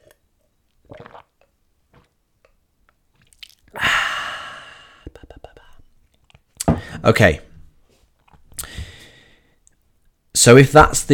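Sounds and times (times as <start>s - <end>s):
sipping a drink: 0.0s - 3.9s
speech: 7.0s - 7.5s, 10.4s - 11.1s.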